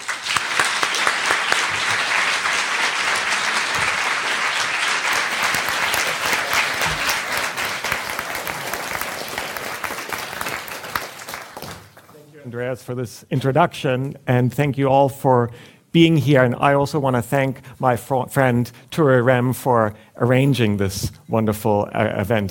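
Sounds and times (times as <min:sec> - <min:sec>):
audience applause welcoming a professor onto the stage: 0:00.0 - 0:12.1
speech: 0:12.7 - 0:22.4.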